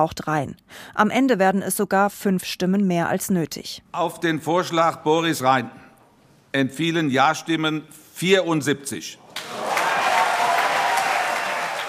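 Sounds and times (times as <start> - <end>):
speech: 0.0 - 5.8, 6.5 - 9.7
sustained applause from a large standing crowd: 9.3 - 11.8.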